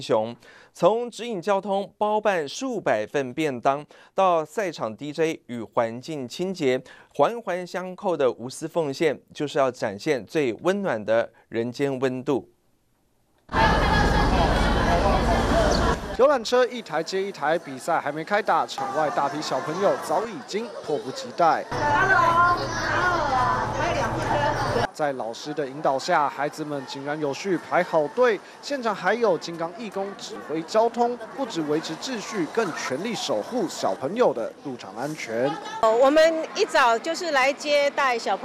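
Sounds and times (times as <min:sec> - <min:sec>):
speech: 0:00.0 - 0:12.6, 0:16.2 - 0:23.2, 0:25.0 - 0:38.4
large crowd of children chattering outside the Kaohsiung Arena: 0:13.5 - 0:16.2, 0:17.0 - 0:38.4.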